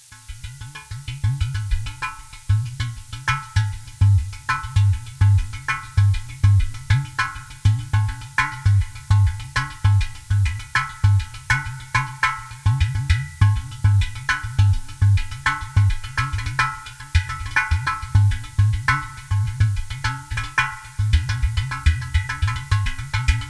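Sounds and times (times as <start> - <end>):
udu drum: 0.0 - 23.4.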